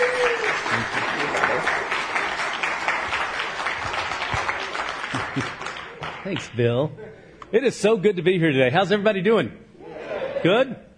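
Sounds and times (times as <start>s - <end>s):
church congregation applauding a guest speaker: 0.0s - 6.5s
speech: 6.3s - 9.6s, 10.4s - 10.8s.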